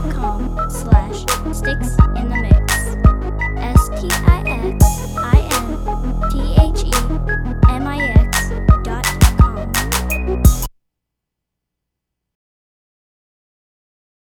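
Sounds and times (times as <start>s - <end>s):
space bass synth: 0.0s - 10.7s.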